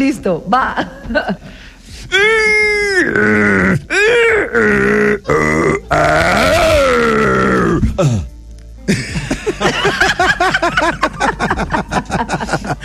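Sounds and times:
people talking: 0:00.0 - 0:01.4
voice imitating straining on the toilet with grunts and groans: 0:02.1 - 0:08.3
people laughing: 0:08.9 - 0:12.8.

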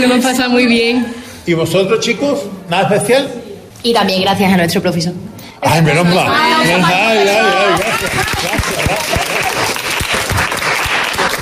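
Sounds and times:
speech: 0:00.0 - 0:09.7
laughter: 0:06.8 - 0:10.4
applause: 0:07.8 - 0:11.3.

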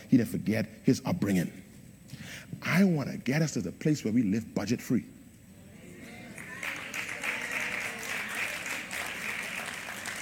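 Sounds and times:
speech: 0:00.1 - 0:01.7, 0:02.3 - 0:05.2
audience clapping: 0:06.1 - 0:10.2.

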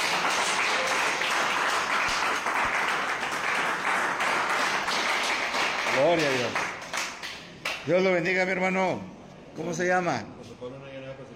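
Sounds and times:
crowd applause: 0:00.0 - 0:07.4
speech: 0:06.1 - 0:06.6, 0:07.9 - 0:10.8.

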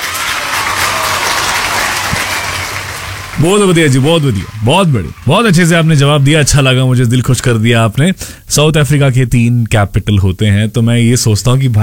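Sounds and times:
crowd applauding: 0:00.0 - 0:07.7
speech: 0:03.4 - 0:11.8.

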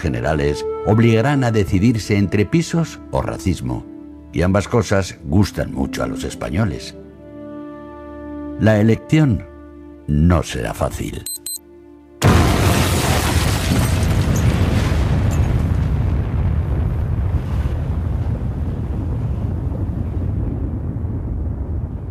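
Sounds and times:
speech: 0:00.0 - 0:07.0, 0:08.6 - 0:09.5, 0:10.1 - 0:11.3
loud explosion: 0:12.2 - 0:22.0.

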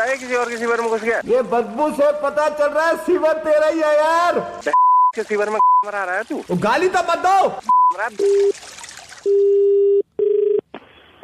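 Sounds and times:
speech: 0:00.0 - 0:09.7
telephone dialing and ringing tones: 0:09.3 - 0:10.6.

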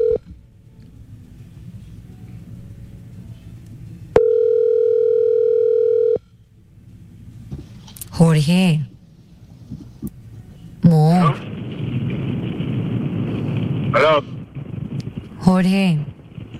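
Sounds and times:
telephone dial tone: 0:00.0 - 0:00.3, 0:04.2 - 0:06.2
low rumbling background: 0:00.0 - 0:16.5
speech: 0:08.4 - 0:08.9, 0:15.5 - 0:16.1.

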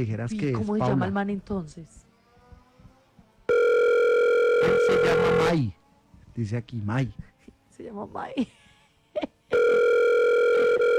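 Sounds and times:
speech: 0:00.0 - 0:02.1, 0:04.6 - 0:05.8, 0:06.4 - 0:08.6
telephone call tone: 0:03.5 - 0:05.5, 0:09.5 - 0:10.9.

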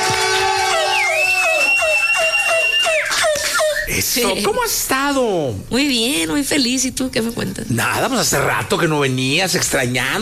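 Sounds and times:
audience applause: 0:00.0 - 0:03.1
speech: 0:03.9 - 0:10.2.

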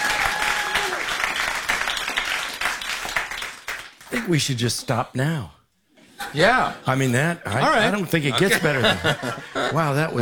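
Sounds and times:
applause: 0:00.0 - 0:04.3
speech: 0:04.1 - 0:05.6, 0:06.3 - 0:10.2
laughter: 0:07.6 - 0:10.2.

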